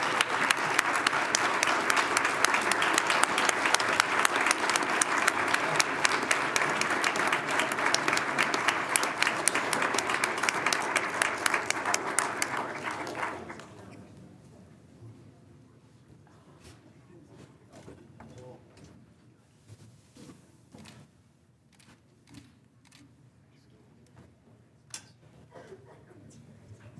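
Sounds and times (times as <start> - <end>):
round of applause: 0.0 - 13.9.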